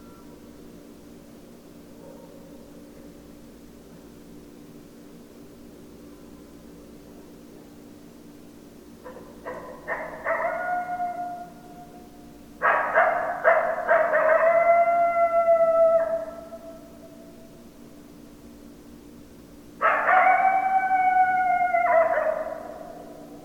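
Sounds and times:
coyote howling: 0:09.5 - 0:17.2, 0:19.8 - 0:23.4.

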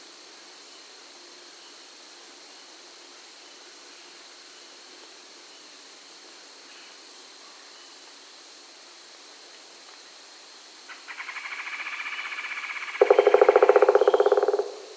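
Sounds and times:
pileated woodpecker: 0:11.1 - 0:14.9.

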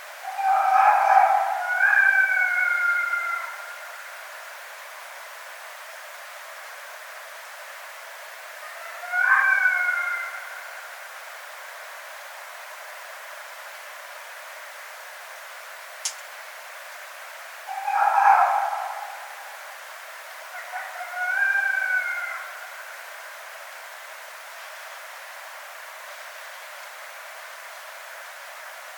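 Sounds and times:
red fox calling: 0:00.2 - 0:03.8, 0:08.6 - 0:10.8, 0:17.7 - 0:19.7, 0:20.5 - 0:22.9.

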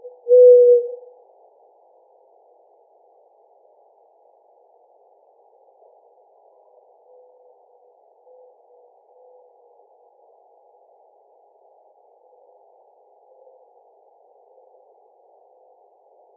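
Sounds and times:
mourning dove cooing: 0:00.0 - 0:01.1.

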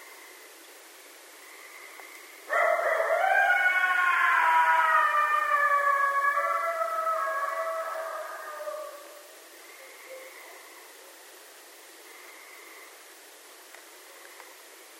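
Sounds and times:
coyote howling: 0:02.5 - 0:09.4.

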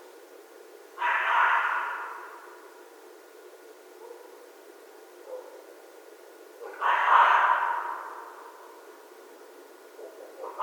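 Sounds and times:
red fox giving harsh rasping screams: 0:01.0 - 0:02.6, 0:06.7 - 0:08.3, 0:10.4 - 0:10.6.

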